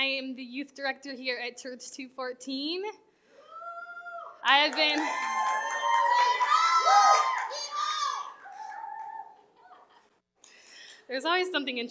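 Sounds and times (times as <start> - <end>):
speech: 0.6 - 3.0, 4.4 - 7.3, 11.1 - 11.8
group of children shouting and cheering: 5.1 - 10.0.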